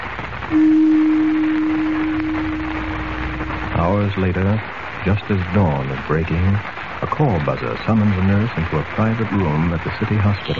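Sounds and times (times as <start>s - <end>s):
speech: 0.5s - 0.8s, 4.0s - 10.5s
gong being struck: 0.5s - 3.8s.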